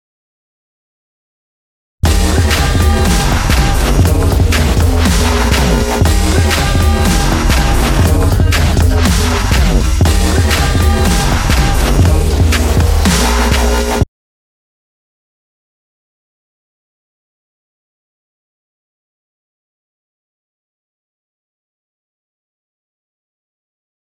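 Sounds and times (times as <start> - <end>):
music beat: 2.0 - 14.0.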